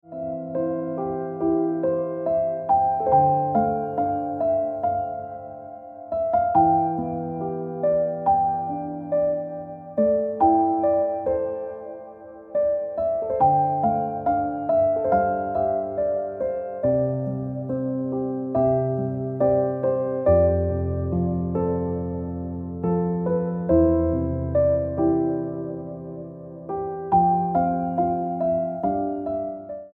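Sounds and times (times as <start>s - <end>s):
piano music: 0.0s - 29.9s.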